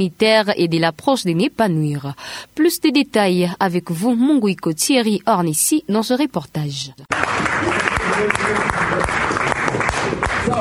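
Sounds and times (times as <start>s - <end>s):
speech: 0.0s - 10.5s
journalists applauding after a question-and-answer session: 7.1s - 10.5s.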